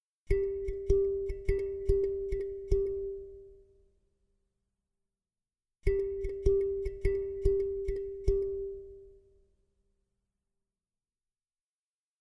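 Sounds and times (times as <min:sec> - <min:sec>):
repeated rhythmic motifs on a single pitch: 0:00.3 - 0:03.6, 0:05.9 - 0:09.2.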